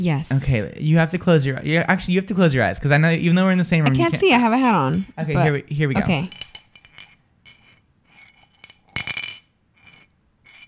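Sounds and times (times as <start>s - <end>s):
speech: 0.0s - 6.5s
coin clinking in a glass: 6.3s - 10.6s.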